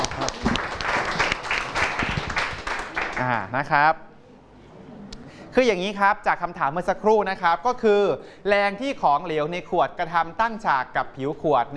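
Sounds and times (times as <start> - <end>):
students clapping: 0.0 - 3.5
speech: 3.2 - 4.1, 5.5 - 11.7.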